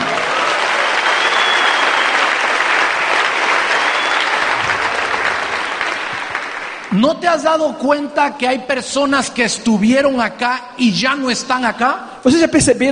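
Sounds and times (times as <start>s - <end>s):
audience applause: 0.0s - 7.0s
speech: 7.0s - 12.9s.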